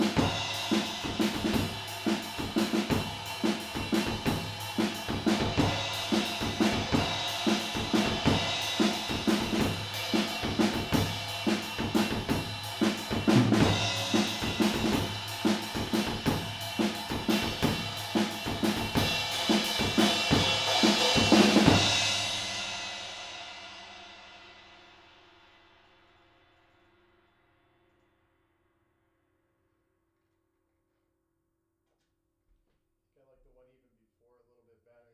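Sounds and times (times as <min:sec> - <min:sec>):
drums: 0:00.0 - 0:26.8.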